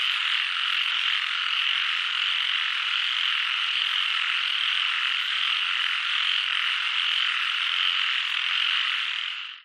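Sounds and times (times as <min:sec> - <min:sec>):
frogs calling in chorus: 0:00.0 - 0:09.6.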